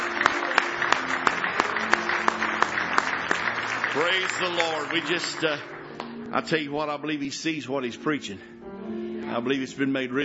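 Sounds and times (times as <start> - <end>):
audience clapping hands in praise: 0.0 - 6.7
speech: 3.9 - 8.6, 9.3 - 10.2.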